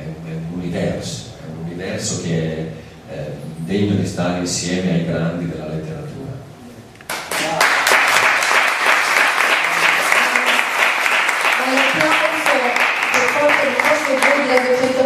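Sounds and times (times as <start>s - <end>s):
speech: 0.7s - 6.5s
theatre audience applause at Teatro dei Conciatori di Roma: 7.1s - 15.0s.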